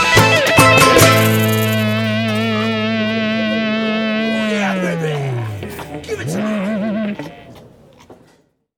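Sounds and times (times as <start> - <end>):
heavy metal song: 0.6 - 6.6.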